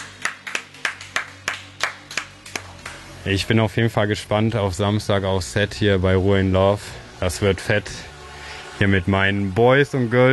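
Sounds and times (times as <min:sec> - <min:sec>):
audience applause: 0:00.0 - 0:03.1
speech: 0:03.2 - 0:08.1, 0:08.8 - 0:10.3.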